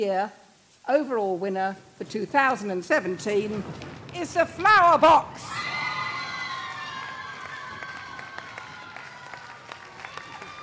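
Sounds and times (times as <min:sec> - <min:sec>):
speech: 0:00.0 - 0:05.7
audience cheering: 0:05.3 - 0:10.6.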